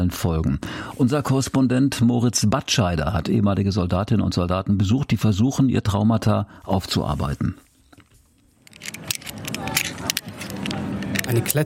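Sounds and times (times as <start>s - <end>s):
speech: 0.0s - 7.7s, 11.3s - 11.6s
climbing carabiners clicking: 7.9s - 11.6s.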